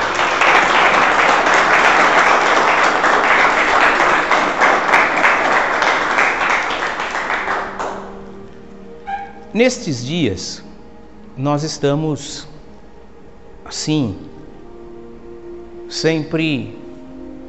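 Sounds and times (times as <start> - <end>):
audience applause: 0.0 - 8.2
speech: 9.6 - 10.7, 11.4 - 12.5, 13.7 - 14.3, 15.9 - 16.8.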